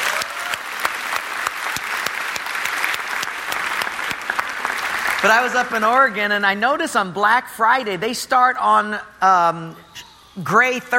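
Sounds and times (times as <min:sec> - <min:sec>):
audience applause: 0:00.0 - 0:06.4
speech: 0:05.2 - 0:10.9.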